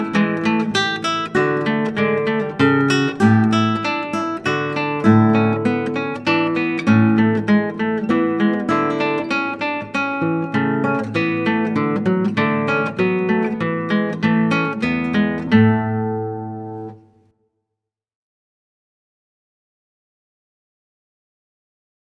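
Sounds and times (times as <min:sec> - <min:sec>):
classical guitar: 0:00.0 - 0:17.3.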